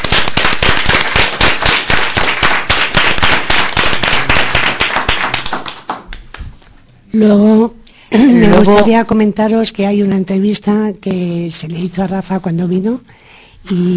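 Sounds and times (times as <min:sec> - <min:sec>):
audience applause: 0:00.0 - 0:06.2
speech: 0:07.1 - 0:13.9.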